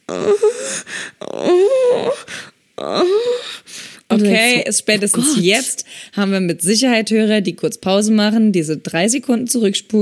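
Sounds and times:
people moaning during sex: 0.0 - 3.4
speech: 0.1 - 1.0, 4.7 - 9.9.

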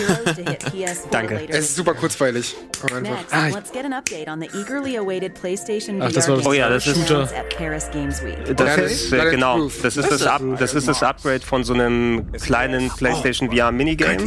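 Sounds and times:
laughter: 0.0 - 1.0
speech: 0.0 - 14.2
finger snap: 2.7 - 3.1.

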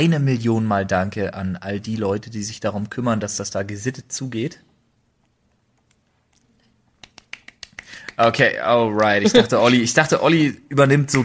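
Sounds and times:
speech: 0.0 - 4.7, 8.2 - 11.2
hand clapping: 7.0 - 8.3.

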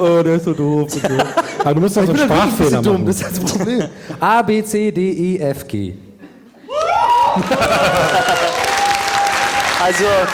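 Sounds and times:
speech: 0.0 - 6.0, 7.4 - 8.6, 9.8 - 10.3
laughter: 0.4 - 4.2, 7.2 - 8.8
people shouting and cheering: 6.7 - 10.3
audience applause: 6.8 - 10.3.

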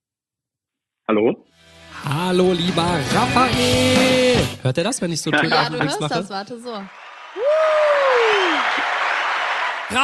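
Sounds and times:
speech: 1.1 - 8.4
large crowd clapping: 5.6 - 10.0.

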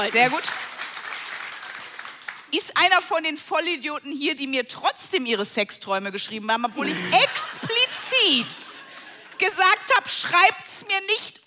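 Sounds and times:
speech: 0.0 - 0.7, 2.5 - 8.7, 9.4 - 11.4
live audience clapping: 0.0 - 2.6
laughter: 6.8 - 10.0.

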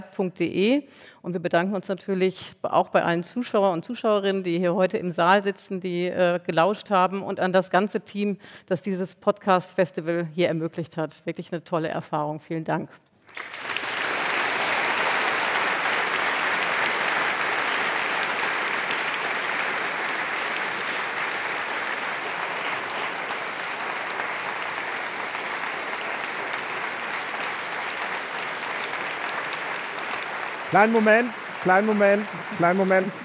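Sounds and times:
speech: 0.1 - 13.6, 30.8 - 33.2
audience applause: 13.3 - 33.2.

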